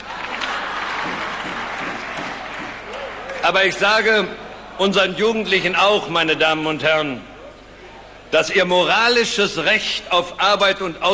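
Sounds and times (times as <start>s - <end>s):
audience clapping: 0.0s - 4.2s
speech: 3.5s - 7.3s, 8.3s - 11.1s.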